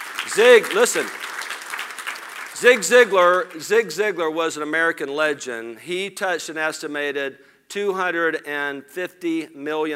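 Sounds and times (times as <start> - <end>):
audience applause: 0.0 - 3.6
speech: 0.3 - 1.3, 2.6 - 9.9.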